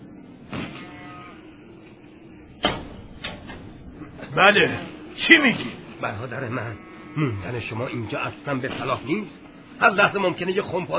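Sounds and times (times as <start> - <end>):
bump: 0.6 - 6.3
door rattle: 2.4 - 5.6
speech: 4.4 - 10.9.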